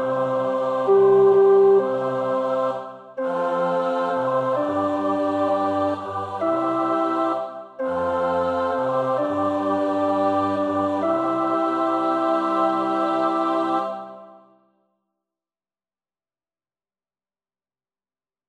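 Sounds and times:
tenor singing a carol verse: 0.0s - 14.3s.

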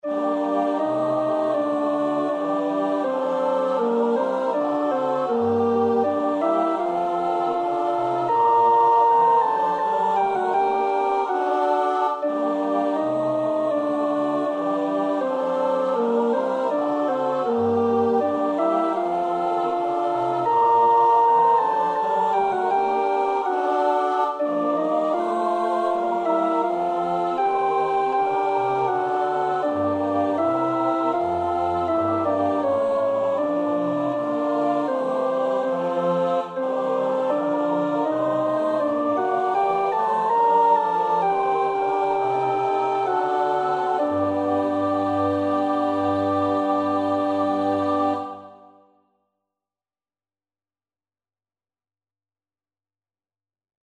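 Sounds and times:
alto choir part practice singing: 0.0s - 48.9s.

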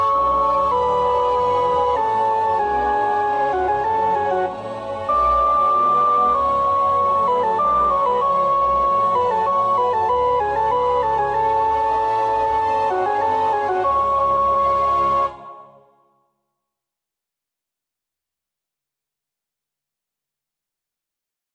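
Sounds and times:
soprano practising a choir part: 0.2s - 16.0s.

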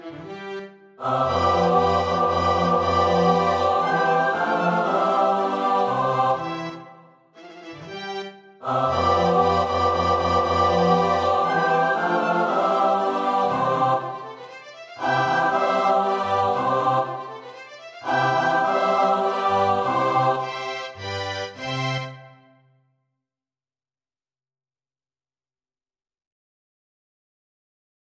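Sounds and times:
SATB choir part practice: 1.0s - 7.1s, 8.6s - 22.2s.

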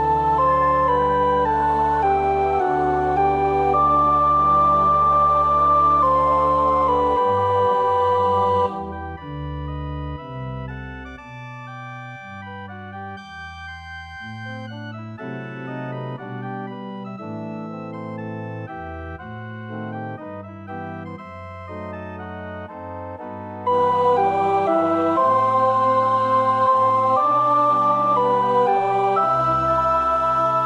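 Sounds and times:
soprano singing: 0.0s - 9.3s, 23.7s - 30.6s.

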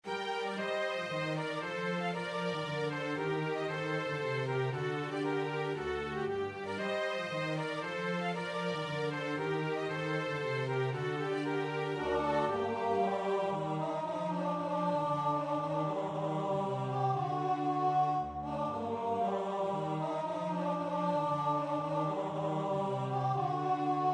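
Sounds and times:
soprano practising a choir part: 0.1s - 24.1s.

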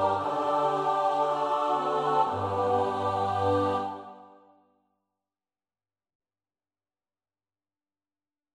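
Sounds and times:
soprano alto tenor bass choir: 0.0s - 4.6s.

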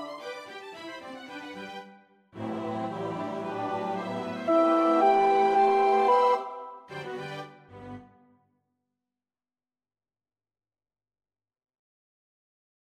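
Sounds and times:
alto choir part practice singing: 2.4s - 7.4s.

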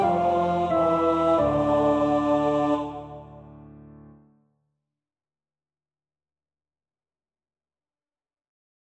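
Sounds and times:
alto singing: 0.0s - 3.7s.

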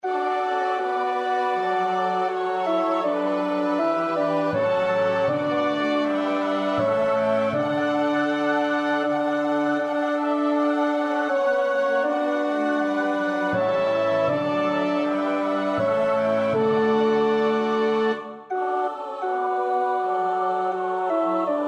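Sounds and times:
tenor singing: 0.0s - 21.6s.

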